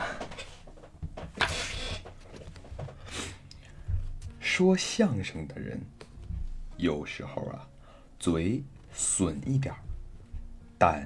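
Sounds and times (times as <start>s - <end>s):
chair being moved: 0.0s - 3.3s
speech: 4.6s - 6.0s, 6.8s - 9.9s, 10.8s - 11.0s.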